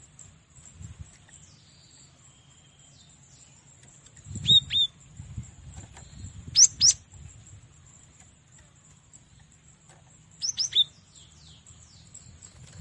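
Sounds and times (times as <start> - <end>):
cinereous tit whistling song: 4.4 - 4.9, 6.5 - 7.0, 10.4 - 11.0.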